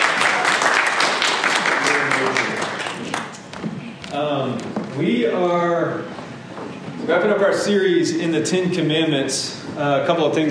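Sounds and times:
audience applause: 0.0s - 3.4s
speech: 4.2s - 6.1s, 7.1s - 10.4s.

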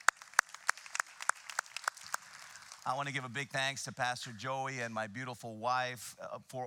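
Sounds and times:
audience clapping: 0.0s - 3.3s
speech: 2.8s - 6.6s.

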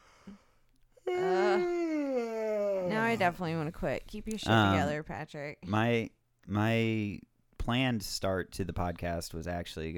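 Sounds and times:
voiced yawn: 0.2s - 3.2s
speech: 2.9s - 9.9s.

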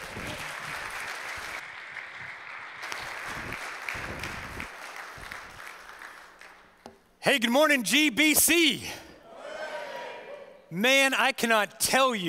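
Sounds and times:
church congregation applauding to welcome a pastor: 0.0s - 6.8s
speech: 7.3s - 9.0s, 10.7s - 12.2s.

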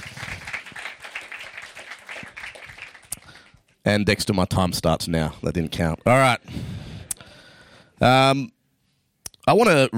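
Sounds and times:
audience applause: 0.0s - 3.6s
speech: 3.8s - 6.7s, 8.0s - 8.6s, 9.5s - 9.9s.

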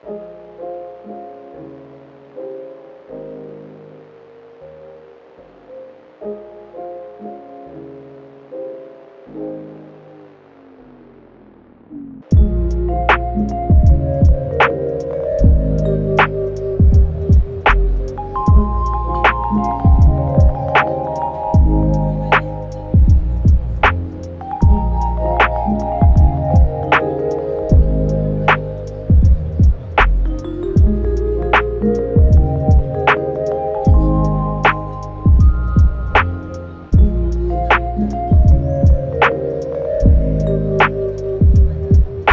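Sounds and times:
lo-fi music: 0.0s - 42.3s.

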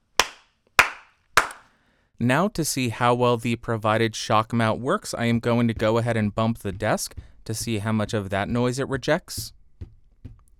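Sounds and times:
single hand clap in untreated room: 0.0s - 1.7s
speech: 2.2s - 9.6s.

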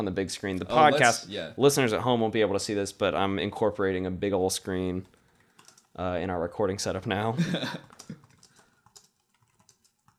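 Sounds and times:
speech: 0.0s - 5.2s, 6.0s - 8.2s
typing on a computer keyboard: 4.8s - 6.0s, 7.7s - 10.1s.

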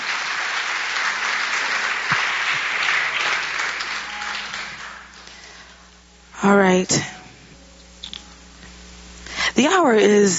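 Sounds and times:
audience clapping: 0.0s - 5.8s
speech: 6.4s - 7.1s, 9.6s - 10.3s.

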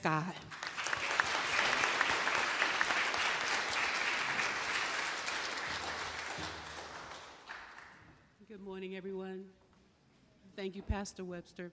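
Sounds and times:
speech: 0.0s - 0.5s, 8.8s - 9.6s, 10.6s - 11.7s
round of applause: 0.5s - 8.1s.

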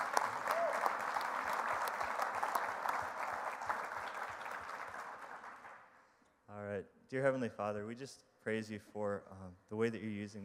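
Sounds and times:
audience applause: 0.0s - 5.9s
speech: 7.1s - 10.4s.

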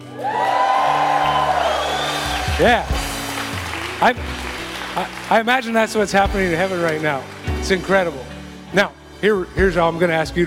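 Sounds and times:
audience big cheer: 0.0s - 6.1s
speech: 2.6s - 3.1s, 4.0s - 4.4s, 5.0s - 10.4s.

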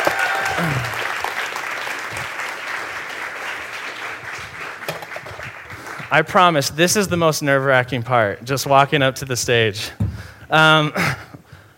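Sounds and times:
faint voices whooping: 0.0s - 1.0s
crowd applauding: 0.0s - 6.3s
speech: 6.1s - 11.2s.

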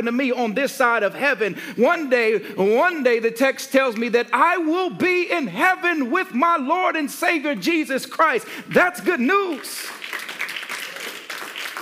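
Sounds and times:
speech: 0.0s - 10.1s
audience clapping: 9.4s - 11.8s.

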